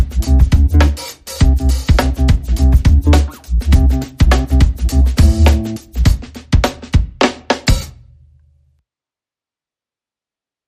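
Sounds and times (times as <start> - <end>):
drum and bass music: 0.0 - 8.0.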